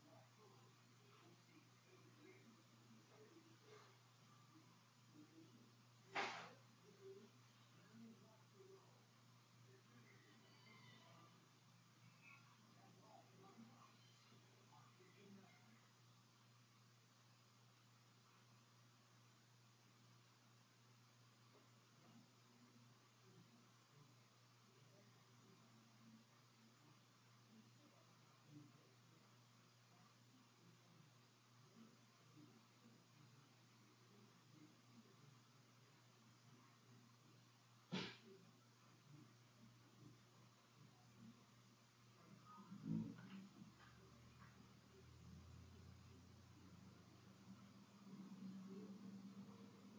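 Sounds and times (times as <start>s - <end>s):
empty room tone: 0.0s - 49.9s.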